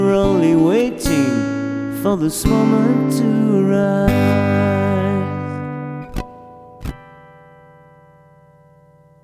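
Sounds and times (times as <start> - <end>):
person singing solo: 0.0 - 6.0
guitar: 0.0 - 9.2.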